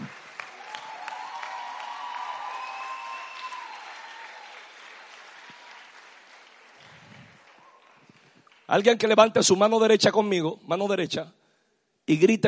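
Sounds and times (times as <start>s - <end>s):
louder audience applause: 0.0s - 8.9s
speech: 8.7s - 11.4s, 12.1s - 12.4s.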